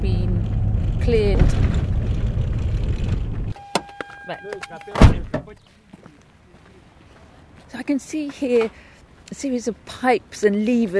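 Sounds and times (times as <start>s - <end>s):
low road rumble inside a car driving toward a gas works: 0.0s - 5.6s
speech: 1.0s - 1.7s, 4.3s - 5.8s, 7.7s - 10.9s.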